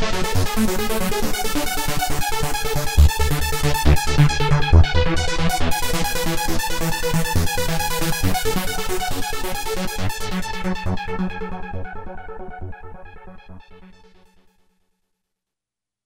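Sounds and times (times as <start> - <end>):
trance music on a Korg microKORG synthesizer: 0.0 - 13.7.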